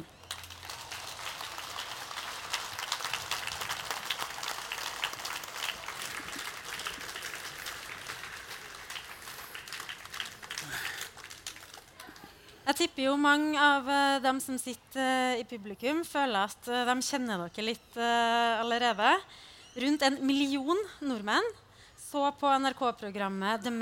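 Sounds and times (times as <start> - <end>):
audience applause: 0.0 - 12.2
speech: 12.8 - 23.8.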